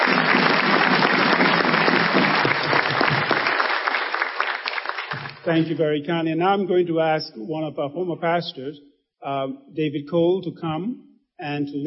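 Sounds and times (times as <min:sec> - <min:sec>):
crowd round of applause: 0:00.0 - 0:05.7
speech: 0:05.5 - 0:11.8.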